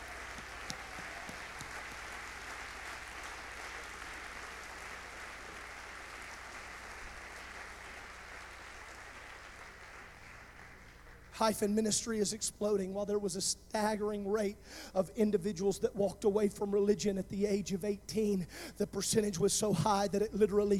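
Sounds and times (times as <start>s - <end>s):
audience clapping hands: 0.0s - 11.5s
speech: 11.4s - 20.7s.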